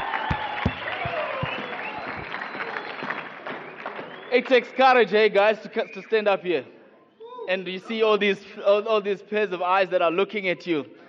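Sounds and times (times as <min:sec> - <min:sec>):
crowd clapping: 0:00.0 - 0:04.8
speech: 0:04.3 - 0:06.8, 0:07.5 - 0:11.0.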